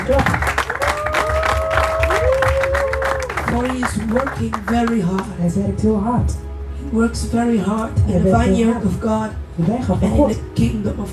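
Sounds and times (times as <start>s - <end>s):
audience applause: 0.0s - 5.0s
speech: 0.1s - 0.5s, 3.8s - 11.1s.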